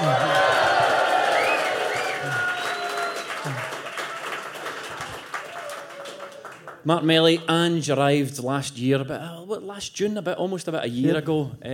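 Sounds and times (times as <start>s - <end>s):
crowd applauding: 0.0s - 7.1s
speech: 6.8s - 11.7s.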